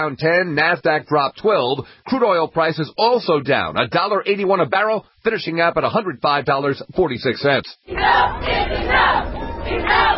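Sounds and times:
speech: 0.0 - 10.1
crowd at a rally: 7.9 - 10.1.

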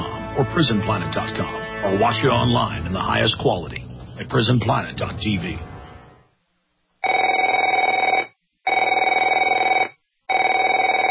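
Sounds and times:
speech: 0.4 - 5.7
telephone ringing: 7.0 - 11.0.

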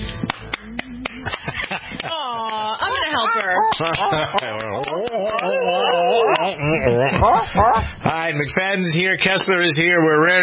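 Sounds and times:
people clapping: 0.1 - 6.6
person humming or murmuring softly: 0.5 - 1.4, 4.3 - 7.8
laughter: 1.1 - 8.1
speech: 3.2 - 10.4.

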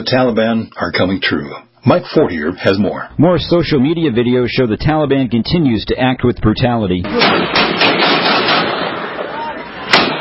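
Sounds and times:
speech: 0.0 - 7.8
gunshots from a video: 7.1 - 9.3, 9.9 - 10.1.

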